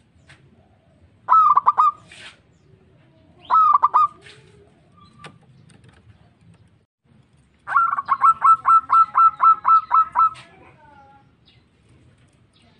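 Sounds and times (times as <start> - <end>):
zebra dove cooing: 0.5 - 2.2, 3.4 - 5.1, 7.7 - 10.8.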